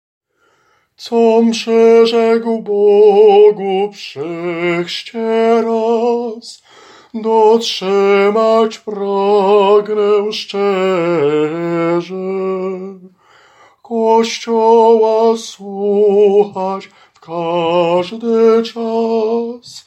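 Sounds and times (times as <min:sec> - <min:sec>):
tenor singing: 0:01.0 - 0:13.2, 0:13.8 - 0:19.8.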